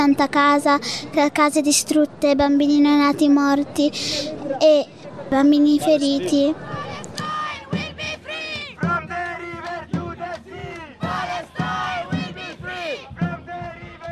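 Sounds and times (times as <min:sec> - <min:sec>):
speech: 0:00.0 - 0:06.7
Palestinian community crowd singing and chanting in a square: 0:06.0 - 0:14.1.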